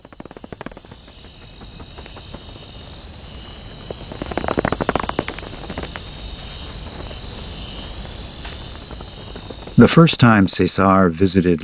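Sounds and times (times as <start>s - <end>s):
insects droning in a cloud forest: 0.0s - 11.6s
speech: 9.8s - 11.6s.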